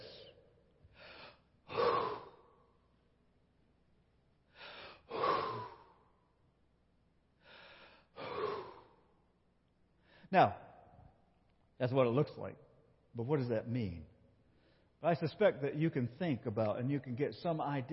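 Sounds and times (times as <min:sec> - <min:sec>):
oldest man in a family ritually breathing on family members: 0:00.9 - 0:02.6, 0:04.5 - 0:06.2, 0:07.4 - 0:09.1
speech: 0:10.3 - 0:10.6, 0:11.8 - 0:12.6, 0:13.2 - 0:14.1, 0:15.0 - 0:17.9.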